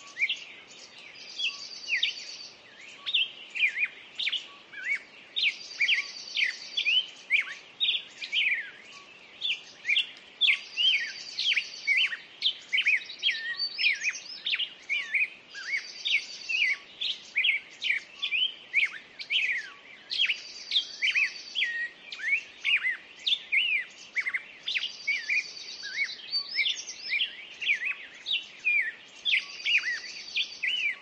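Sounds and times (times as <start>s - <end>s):
birds singing at dawn: 0.0s - 31.0s.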